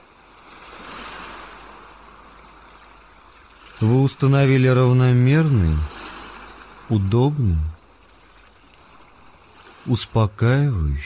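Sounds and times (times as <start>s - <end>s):
ocean surf rolling in: 0.0s - 11.0s
speech: 3.8s - 5.9s, 6.9s - 7.8s, 9.8s - 11.0s.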